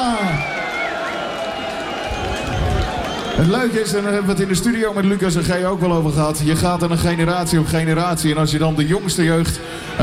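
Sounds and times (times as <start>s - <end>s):
crowd shouting: 0.0s - 3.4s
loud crowd clapping: 0.0s - 4.2s
high whistles: 0.3s - 3.5s
speech: 3.4s - 10.0s.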